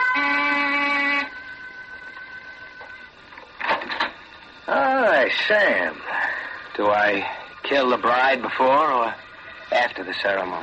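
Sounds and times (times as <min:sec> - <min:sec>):
door buzzer: 0:00.0 - 0:01.4
faint hum: 0:00.0 - 0:10.6
clatter: 0:02.8 - 0:04.3
speech: 0:05.3 - 0:06.1, 0:06.8 - 0:10.6.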